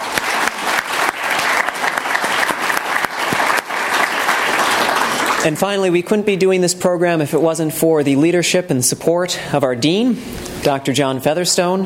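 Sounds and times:
audience applause: 0.0s - 5.6s
speech: 5.4s - 11.8s.

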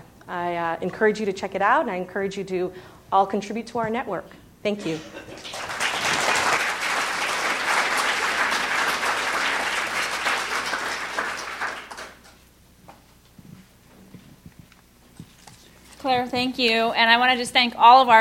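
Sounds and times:
quiet room noise: 0.0s - 18.1s
speech: 0.3s - 5.7s, 16.1s - 18.1s
audience applause: 4.9s - 12.4s.

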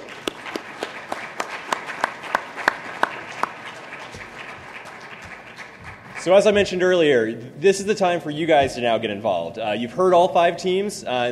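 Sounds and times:
round of applause: 0.0s - 6.8s
speech: 6.2s - 11.3s.

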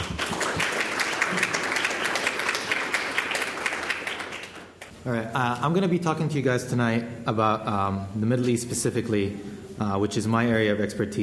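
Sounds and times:
audience applause: 0.0s - 4.9s
speech: 5.0s - 11.2s.

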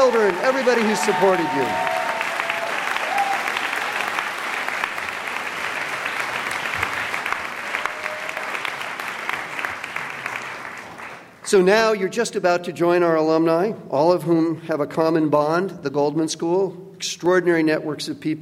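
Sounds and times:
audience applause: 0.0s - 11.4s
speech: 0.1s - 2.0s, 11.5s - 18.4s
faint whoops and voices: 1.0s - 3.6s.

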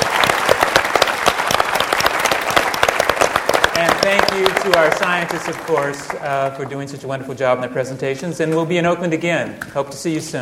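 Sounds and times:
audience applause: 0.0s - 6.9s
speech: 3.8s - 10.3s.

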